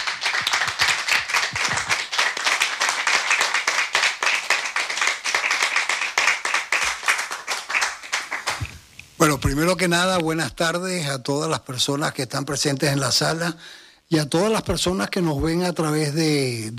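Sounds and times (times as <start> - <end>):
audience applause: 0.0 - 8.9
speech: 9.2 - 16.7.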